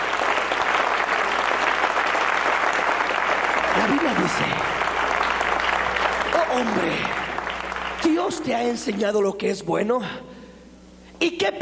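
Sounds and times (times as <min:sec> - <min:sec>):
audience clapping: 0:00.0 - 0:09.3
speech: 0:06.6 - 0:07.2, 0:08.1 - 0:10.3, 0:11.2 - 0:11.6.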